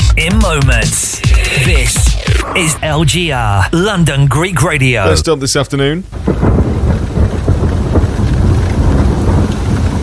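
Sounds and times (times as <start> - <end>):
speech: 0.2 - 7.0
heavy rain: 0.3 - 10.0
deep low thunder rumbling: 0.4 - 10.0.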